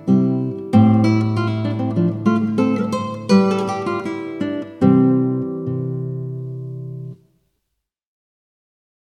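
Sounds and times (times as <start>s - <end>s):
polka in C major played on guitar: 0.0s - 7.3s.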